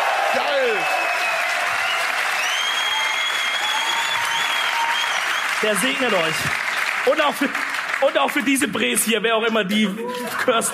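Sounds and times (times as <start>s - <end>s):
whoops and cheers: 0.0s - 6.2s
audience applause: 0.0s - 9.0s
speech: 5.6s - 10.7s.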